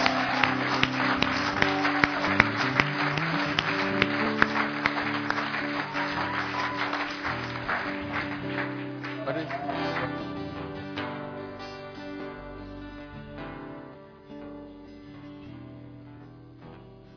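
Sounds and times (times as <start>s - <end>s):
audience round of applause: 0.0s - 11.2s.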